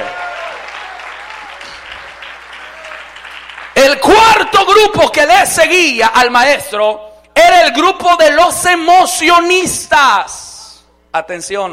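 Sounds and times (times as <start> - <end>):
audience applause: 0.0 - 3.8
speech: 4.8 - 10.4, 11.1 - 11.7.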